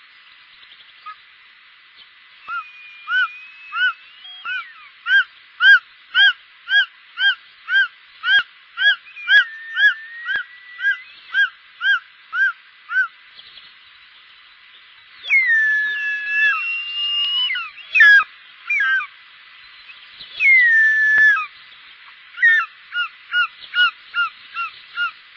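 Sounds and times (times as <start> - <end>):
short-toed eagle calling: 2.4 - 13.2, 15.2 - 19.1, 19.8 - 25.3.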